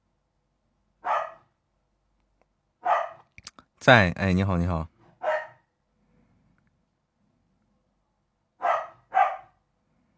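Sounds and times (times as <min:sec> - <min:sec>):
dog barking: 0:01.0 - 0:01.6, 0:02.8 - 0:03.3, 0:05.2 - 0:05.7, 0:08.6 - 0:09.6
speech: 0:03.8 - 0:04.9.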